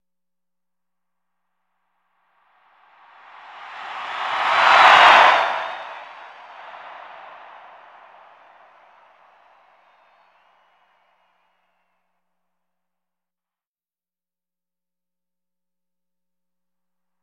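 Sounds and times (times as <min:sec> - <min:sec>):
huge arena crowd cheering with Doppler: 0:02.9 - 0:11.4.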